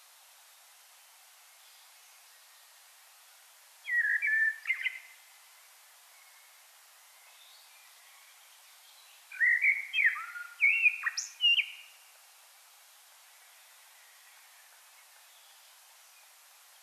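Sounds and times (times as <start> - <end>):
common blackbird singing: 3.8 - 5.2, 8.9 - 12.0.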